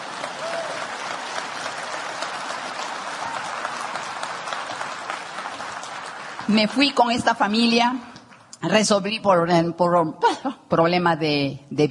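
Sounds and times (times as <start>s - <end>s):
audience clapping: 0.0s - 8.7s
speech: 6.5s - 11.8s.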